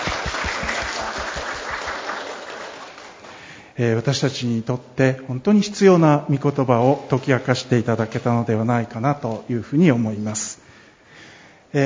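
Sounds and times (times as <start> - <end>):
audience applause: 0.0 - 3.5
speech: 3.8 - 10.6.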